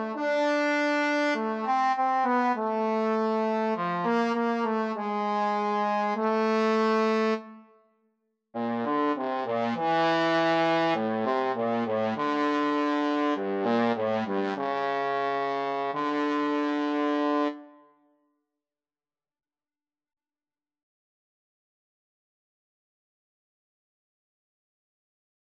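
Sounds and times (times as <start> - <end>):
trombone duet: 0.0 - 7.5, 8.6 - 17.6.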